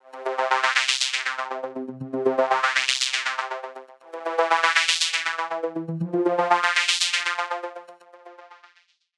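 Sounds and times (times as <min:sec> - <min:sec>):
plucky preset sound: 0:00.2 - 0:07.9.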